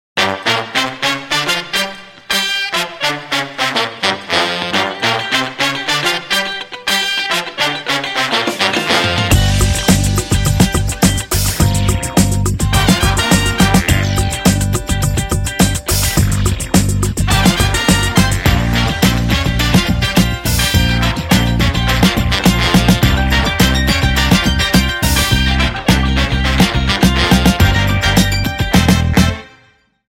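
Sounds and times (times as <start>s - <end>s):
funk music: 0.2s - 29.7s.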